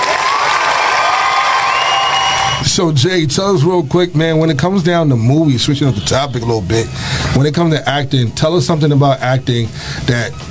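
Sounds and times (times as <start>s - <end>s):
crowd clapping: 0.0s - 2.6s
speech: 2.8s - 10.4s.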